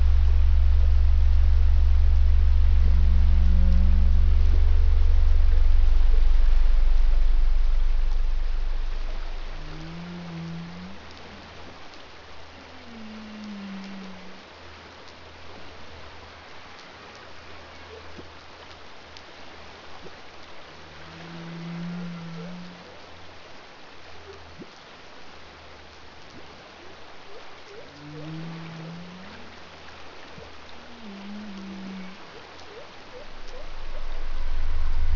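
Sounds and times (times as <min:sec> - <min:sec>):
pygmy blue whale three part call: 0:00.0 - 0:11.0, 0:21.0 - 0:22.9, 0:27.7 - 0:29.6, 0:30.8 - 0:35.1.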